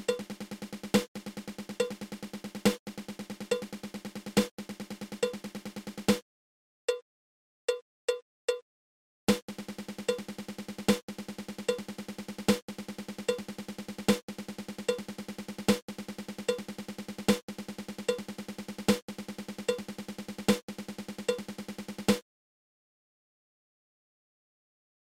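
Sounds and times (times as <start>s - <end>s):
fifteen stroke drum roll: 0.0s - 6.2s, 9.3s - 22.2s.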